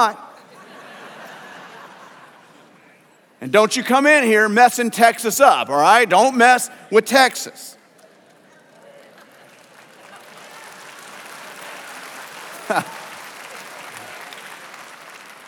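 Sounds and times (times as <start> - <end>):
speech: 0.0 - 0.2, 3.4 - 7.8, 12.7 - 13.0
laughter: 0.4 - 3.0, 12.4 - 13.9
crowd clapping: 7.8 - 15.4.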